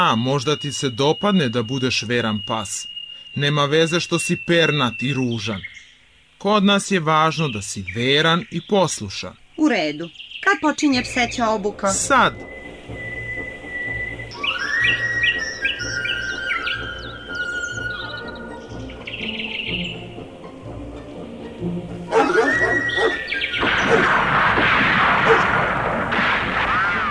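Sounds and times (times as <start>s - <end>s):
speech: 0.0s - 5.8s, 6.4s - 12.6s
high whistling and chirping tones: 0.0s - 6.1s, 11.0s - 20.2s, 22.1s - 24.2s, 25.3s - 25.5s
hunters' gunfire at the start of a duck hunt: 23.6s - 27.1s.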